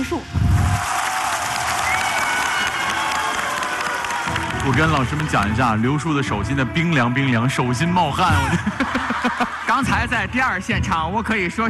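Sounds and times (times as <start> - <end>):
speech: 0.0 - 0.5, 4.6 - 11.6
audience applause at a competition show: 0.5 - 6.0
laughter: 8.1 - 10.4.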